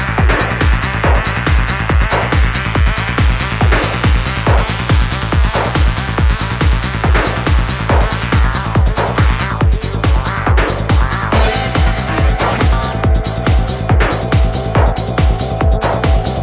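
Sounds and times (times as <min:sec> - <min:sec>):
acid echo: 0:00.2 - 0:16.4.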